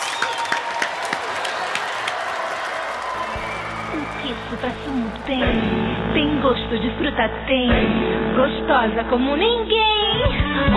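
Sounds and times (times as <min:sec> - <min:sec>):
applause: 0:00.0 - 0:05.9
speech: 0:04.2 - 0:10.7.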